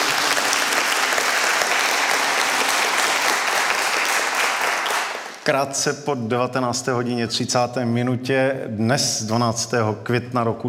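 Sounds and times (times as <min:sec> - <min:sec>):
studio audience applause: 0:00.0 - 0:05.4
speech: 0:05.5 - 0:10.6.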